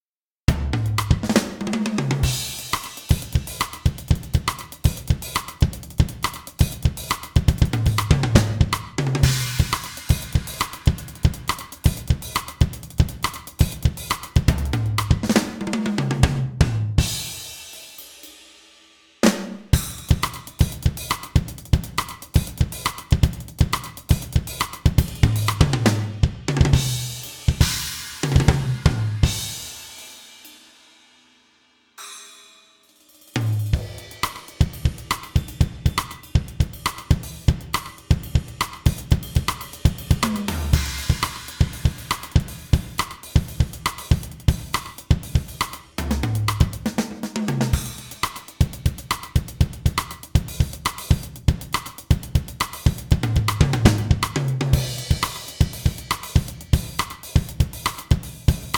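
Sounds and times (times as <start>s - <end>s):
drums: 0.5s - 58.7s.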